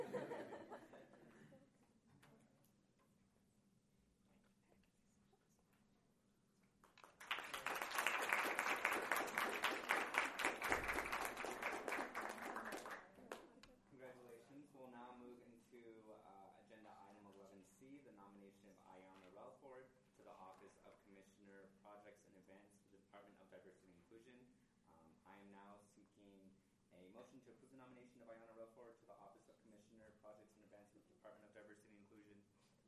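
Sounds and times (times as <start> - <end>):
laughter: 0.0 - 1.7
people clapping: 6.8 - 13.7.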